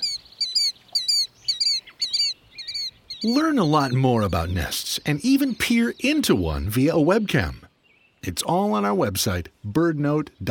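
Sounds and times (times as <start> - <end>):
plover calls: 0.0 - 5.7
speech: 3.2 - 10.4.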